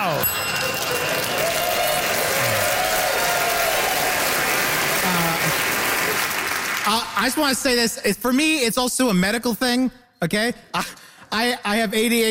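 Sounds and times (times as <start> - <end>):
crowd cheering and applauding: 0.0 - 7.5
speech: 6.9 - 12.2.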